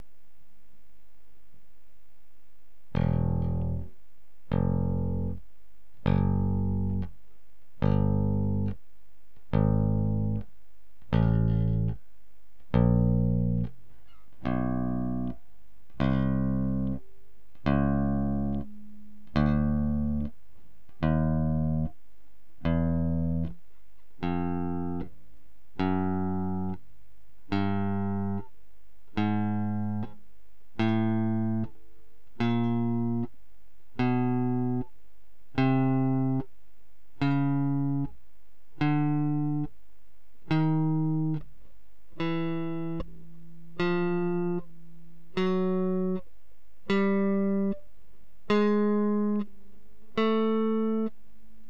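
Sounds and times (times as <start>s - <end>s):
bass guitar played with plectrum: 2.9s - 7.2s, 7.8s - 8.8s, 9.4s - 22.0s, 22.6s - 23.6s, 24.2s - 28.5s, 29.1s - 30.2s, 30.8s - 34.9s, 35.5s - 36.5s, 37.2s - 38.2s, 38.8s - 39.8s, 40.4s - 41.5s, 42.1s - 47.9s, 48.5s - 51.2s.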